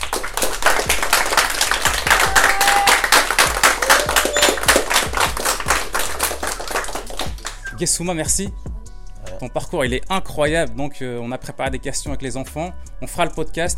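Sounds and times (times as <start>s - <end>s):
audience applause: 0.0s - 7.6s
speech: 7.8s - 8.8s, 9.4s - 13.7s.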